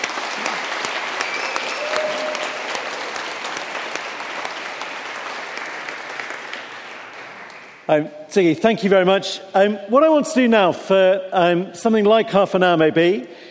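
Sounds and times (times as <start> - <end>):
audience applause: 0.0 - 7.9
speech: 7.9 - 13.4.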